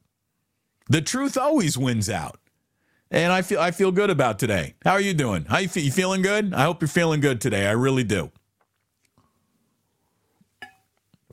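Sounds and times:
speech: 0.9 - 2.4, 3.1 - 8.4
ceramic cup clink as cup is set down: 10.6 - 10.9.

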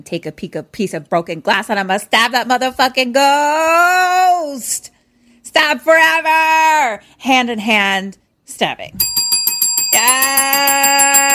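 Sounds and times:
speech: 0.0 - 4.9, 5.5 - 9.2, 9.9 - 11.3
double bell ding: 9.0 - 11.3.

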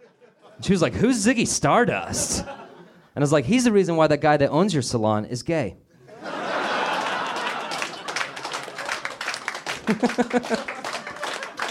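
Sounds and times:
laughter: 0.0 - 0.6, 2.0 - 3.1, 6.0 - 9.2, 9.8 - 11.6
speech: 0.6 - 2.6, 3.2 - 5.8, 9.9 - 10.8
audience applause: 6.5 - 11.6.

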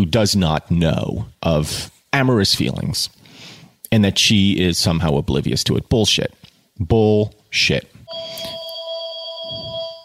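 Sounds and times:
speech: 0.0 - 3.2, 3.9 - 8.5
phone ringing: 8.1 - 10.0.

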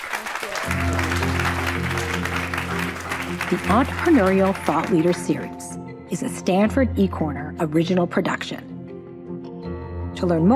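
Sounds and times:
audience applause: 0.0 - 5.7
sustained musical tone: 0.6 - 6.1
speech: 3.5 - 8.7, 10.2 - 10.5.

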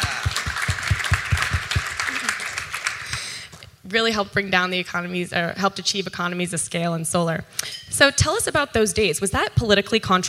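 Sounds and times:
audience applause: 0.0 - 3.4
speech: 3.9 - 10.2.

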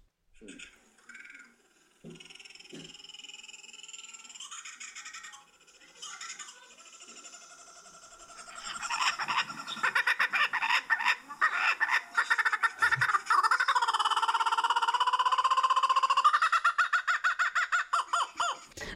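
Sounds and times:
kookaburra laughing call: 0.5 - 18.7.

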